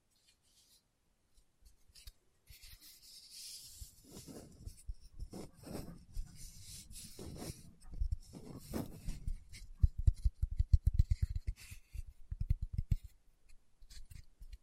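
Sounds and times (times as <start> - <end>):
scratchy brushing: 1.7 - 13.1
fingertips tapping on a surface: 4.2 - 13.2.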